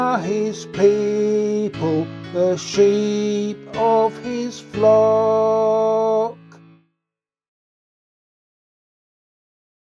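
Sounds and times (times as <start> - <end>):
psalm singing: 0.0 - 6.6.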